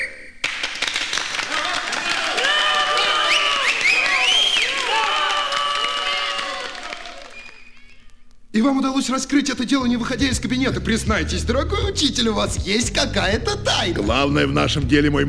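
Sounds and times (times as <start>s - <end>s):
applause: 0.4s - 8.2s
people shouting: 1.5s - 7.3s
whistle-like tones: 3.2s - 4.9s, 7.2s - 8.2s
speech: 8.6s - 15.2s.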